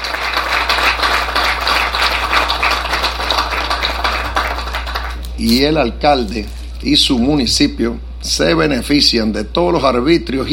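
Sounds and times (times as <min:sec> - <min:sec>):
audience applause: 0:00.0 - 0:05.3
speech: 0:05.4 - 0:10.5.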